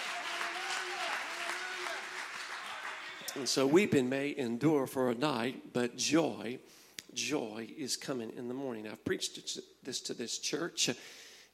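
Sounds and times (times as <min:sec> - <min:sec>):
audience clapping hands: 0:00.0 - 0:03.8
speech: 0:03.4 - 0:11.5.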